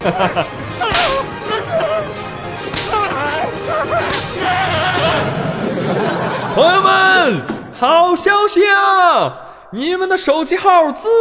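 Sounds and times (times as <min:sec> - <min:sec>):
speech: 0:00.0 - 0:00.6, 0:06.6 - 0:11.1
laughter: 0:00.0 - 0:07.8
whip cracking: 0:00.9 - 0:01.3, 0:02.7 - 0:03.2, 0:04.1 - 0:04.4.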